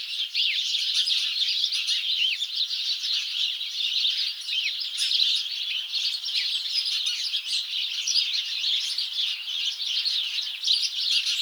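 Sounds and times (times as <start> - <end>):
house sparrow flock chirping: 0.0 - 11.4.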